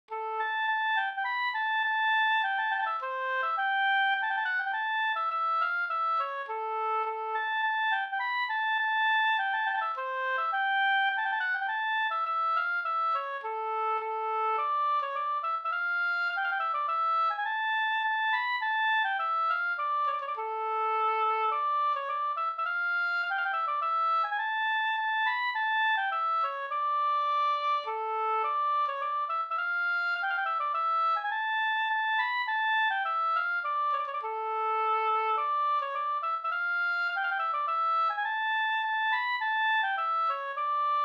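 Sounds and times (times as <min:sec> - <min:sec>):
polska folk dance tune: 0:00.1 - 0:41.0.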